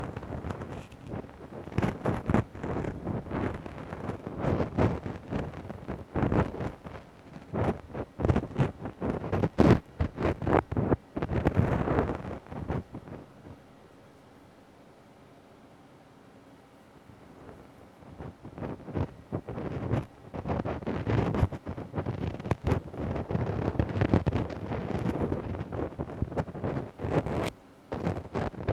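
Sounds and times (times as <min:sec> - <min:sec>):
ear cleaning ASMR on the right side: 0:00.0 - 0:12.8, 0:18.2 - 0:28.7.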